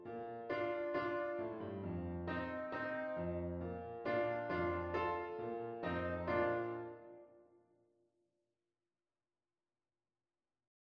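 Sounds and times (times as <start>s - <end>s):
piano: 0.0s - 7.6s.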